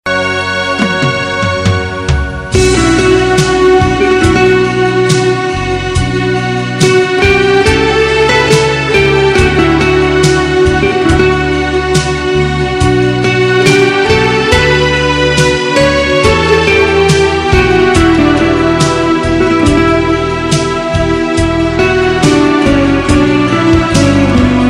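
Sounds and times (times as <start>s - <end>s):
romantic music: 0.1s - 24.6s.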